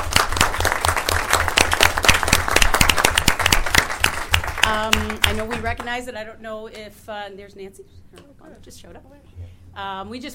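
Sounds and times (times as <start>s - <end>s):
audience applause: 0.0s - 5.8s
speech: 5.4s - 10.3s.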